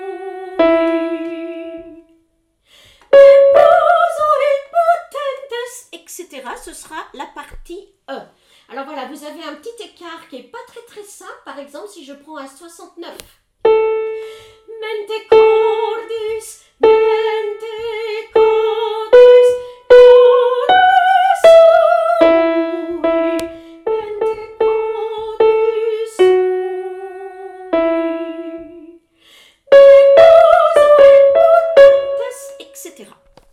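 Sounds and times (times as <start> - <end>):
tenor singing a canticle: 3.1 - 5.4, 14.8 - 29.0, 29.7 - 33.1.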